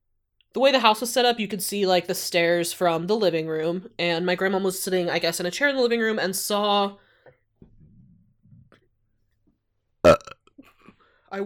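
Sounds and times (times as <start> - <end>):
speech: 0.5 - 7.0
muffled burp: 10.0 - 10.9.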